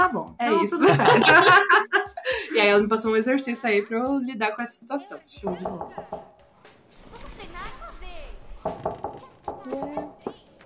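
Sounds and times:
speech: 0.0s - 1.8s, 2.6s - 6.3s
laughter: 0.5s - 2.6s
knocking on a door: 5.5s - 6.4s, 8.6s - 10.5s.

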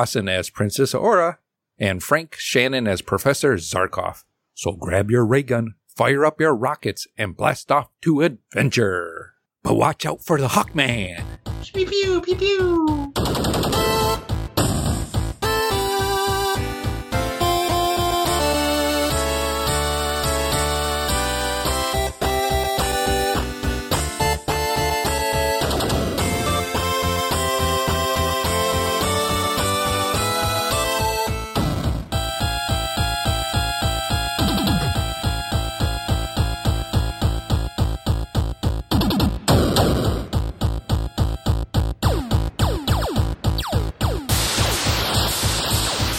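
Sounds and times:
speech: 0.0s - 13.0s
8-bit chiptune music with square-wave notes: 10.6s - 46.1s.

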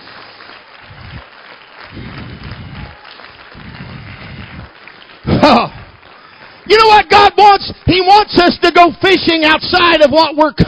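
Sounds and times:
audience hand-clapping applause: 0.0s - 9.5s
speech: 5.4s - 5.8s, 6.7s - 10.6s.

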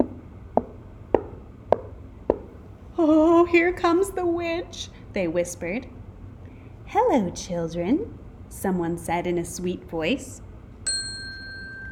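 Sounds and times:
footsteps: 0.0s - 2.6s
speech: 3.0s - 6.0s, 6.9s - 10.5s.

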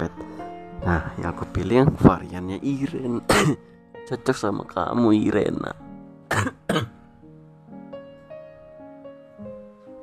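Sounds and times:
speech: 0.9s - 6.9s
sharp coughs: 3.3s - 3.6s, 6.3s - 7.0s.

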